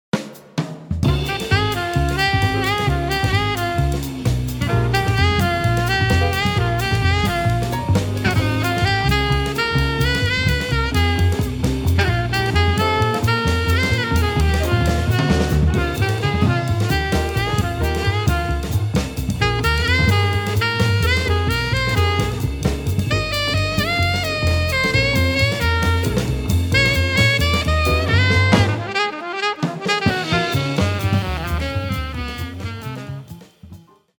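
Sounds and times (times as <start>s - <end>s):
blues music: 0.2s - 34.1s.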